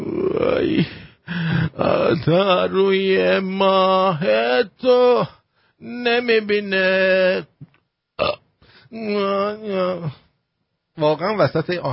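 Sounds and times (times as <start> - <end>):
speech: 0.6 - 1.0, 2.1 - 7.5, 8.2 - 10.2, 11.0 - 11.9
long loud burp: 8.2 - 8.5.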